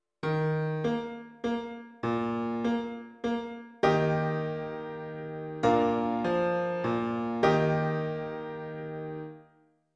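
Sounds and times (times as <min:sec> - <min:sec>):
piano: 0:00.2 - 0:09.9.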